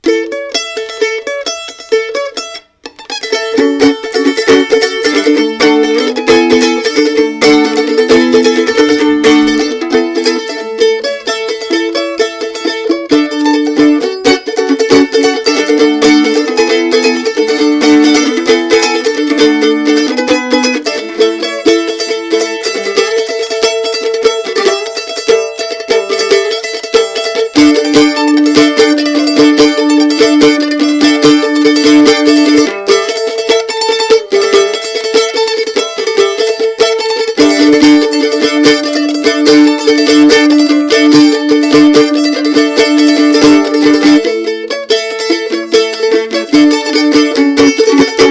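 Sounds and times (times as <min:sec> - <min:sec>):
mandolin playing improvised hillbilly breakdown: 0:00.0 - 0:48.3.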